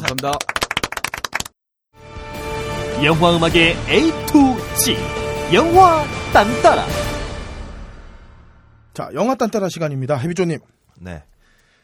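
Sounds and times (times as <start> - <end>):
applause: 0.0 - 1.5
speech: 0.1 - 0.5, 3.0 - 7.0, 9.0 - 11.3.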